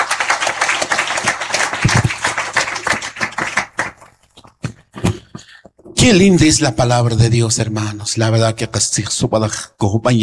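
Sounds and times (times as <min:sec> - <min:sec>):
audience applause: 0:00.0 - 0:04.2
speech: 0:06.1 - 0:10.2.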